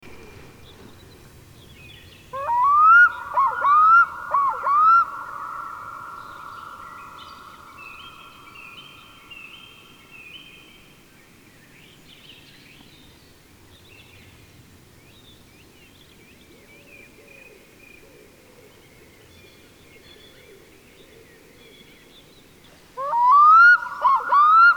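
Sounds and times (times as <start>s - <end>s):
Black-throated loon whistled calls: 2.4s - 8.7s, 23.0s - 24.7s.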